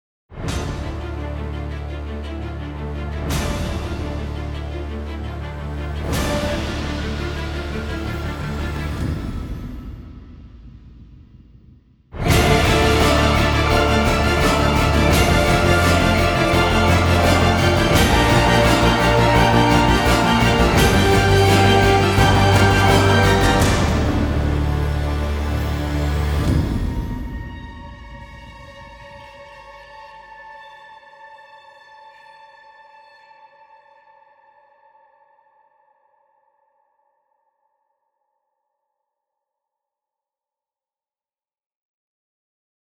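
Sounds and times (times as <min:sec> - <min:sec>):
trailer music: 0:00.4 - 0:11.3, 0:12.2 - 0:29.7.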